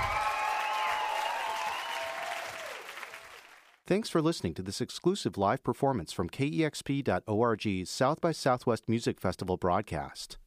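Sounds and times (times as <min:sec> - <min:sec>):
audience applause after a live performance: 0:00.0 - 0:03.8
speech: 0:03.9 - 0:10.4.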